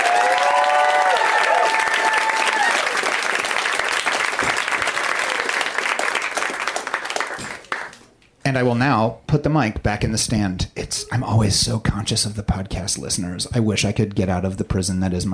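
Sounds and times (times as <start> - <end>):
audience round of applause: 0.0 - 8.0
speech: 8.5 - 15.3.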